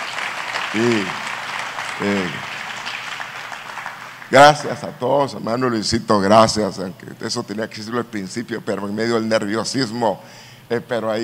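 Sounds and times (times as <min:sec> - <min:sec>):
audience applause: 0:00.0 - 0:04.9
speech: 0:00.7 - 0:01.3, 0:02.0 - 0:02.5, 0:04.3 - 0:11.2.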